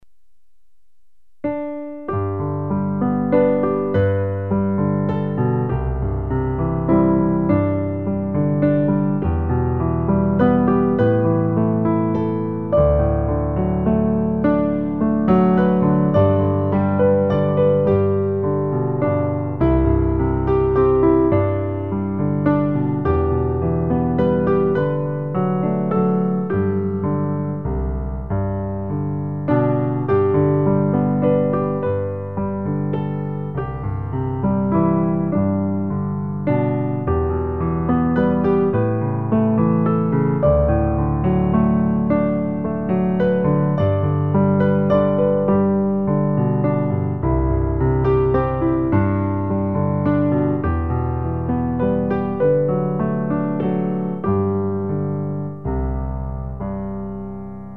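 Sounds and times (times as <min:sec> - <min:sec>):
piano: 0:00.0 - 0:57.7.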